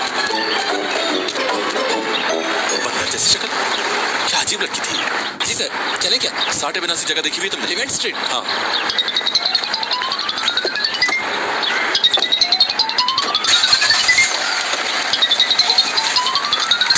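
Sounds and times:
mobile phone ringing with looping electronic tune: 0.0s - 3.3s, 8.9s - 16.9s
speech: 4.5s - 9.4s.

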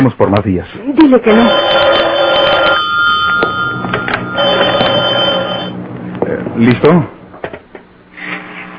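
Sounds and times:
speech: 0.0s - 1.8s, 6.6s - 7.2s
telephone bell ringing: 1.3s - 5.8s.

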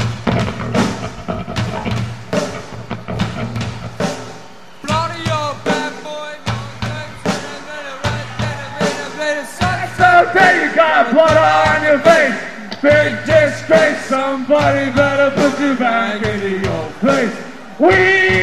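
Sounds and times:
live concert crowd stomping and clapping: 0.0s - 18.4s
live concert crowd singing along: 4.4s - 18.4s.

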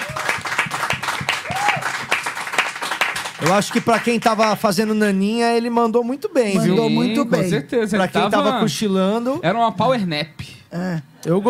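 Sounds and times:
applause: 0.0s - 4.8s
speech: 3.4s - 11.4s.

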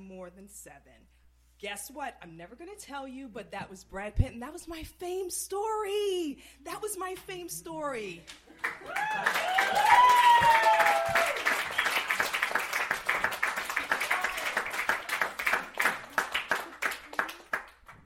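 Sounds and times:
speech: 0.3s - 11.4s
audience clapping: 8.3s - 18.0s
people whooping and cheering: 8.7s - 11.8s, 13.7s - 15.4s.

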